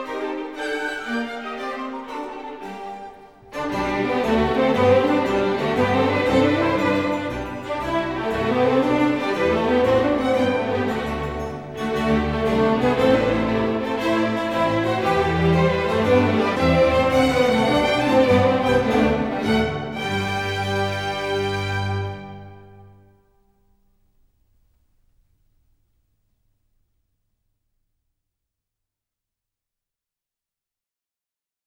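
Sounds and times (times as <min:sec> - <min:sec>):
baroque dance piece: 0:00.0 - 0:23.4.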